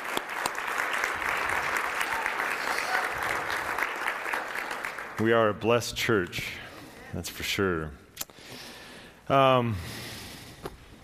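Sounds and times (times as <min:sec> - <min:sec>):
audience applause: 0:00.0 - 0:05.5
speech: 0:05.2 - 0:08.0, 0:09.3 - 0:10.0.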